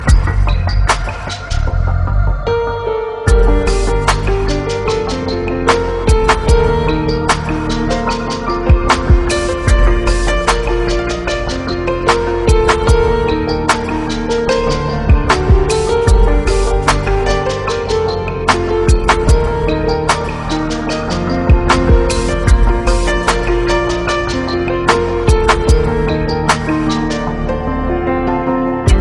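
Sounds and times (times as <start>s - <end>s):
piano: 0.0s - 29.0s.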